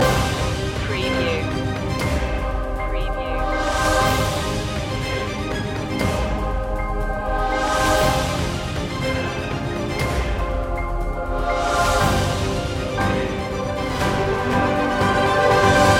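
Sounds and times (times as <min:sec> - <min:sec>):
countdown music loop: 0:00.0 - 0:15.9.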